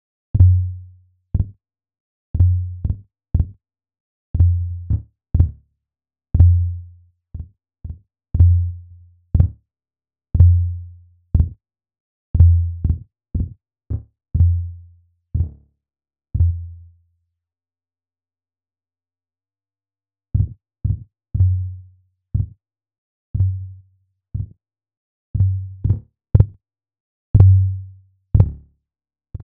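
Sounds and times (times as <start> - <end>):
kick drum: 0.4 - 0.7, 1.4 - 1.6, 2.4 - 3.6, 4.4 - 5.6, 6.4 - 6.7, 7.4 - 8.7, 9.4 - 9.6, 10.4 - 10.7, 11.4 - 11.6, 12.4 - 14.7, 15.4 - 15.6, 16.4 - 16.7, 20.4 - 21.6, 22.4 - 22.6, 24.4 - 24.6, 25.4 - 26.6, 27.4 - 27.8, 28.4 - 28.6.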